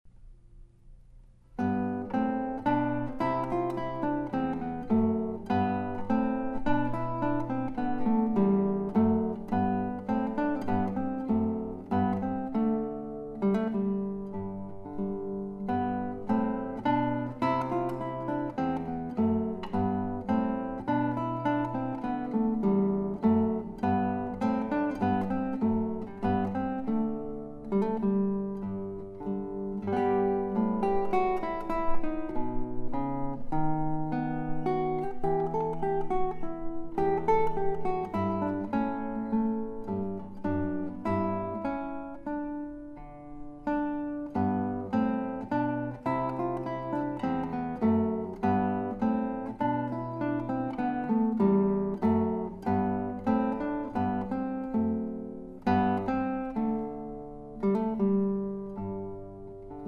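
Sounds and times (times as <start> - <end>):
minuet: 1.6 - 59.8.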